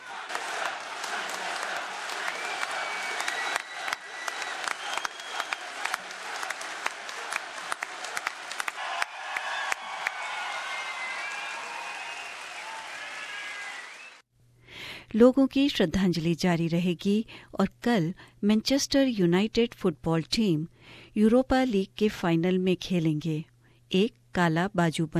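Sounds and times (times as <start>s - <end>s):
gathered crowd chanting a slogan: 0.0s - 9.7s
applause: 0.0s - 14.2s
speech: 15.1s - 25.1s.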